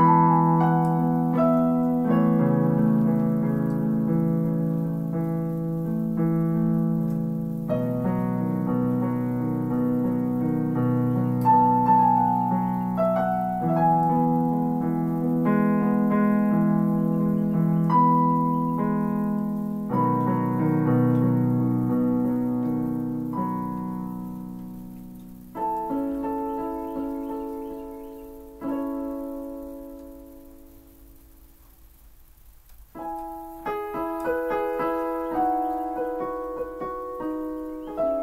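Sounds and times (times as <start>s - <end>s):
classical piece in E major: 0.0s - 31.2s, 33.0s - 38.2s
live birds in background: 10.0s - 14.8s, 16.2s - 20.2s, 23.6s - 29.0s, 34.3s - 38.2s.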